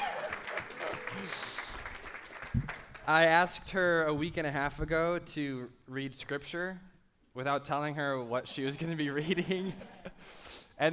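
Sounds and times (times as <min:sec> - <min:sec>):
audience applause: 0:00.0 - 0:03.0
speech: 0:03.1 - 0:10.9.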